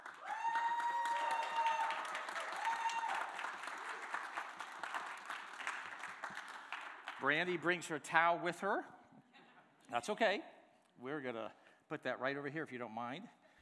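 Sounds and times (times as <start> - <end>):
church congregation applauding to welcome a newcomer: 0.0 - 7.7
speech: 7.2 - 9.0, 9.9 - 13.4.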